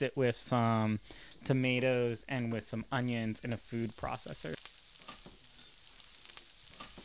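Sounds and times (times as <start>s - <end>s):
speech: 0.0s - 4.6s
pork sizzling in a frying pan as it browns: 3.3s - 7.0s.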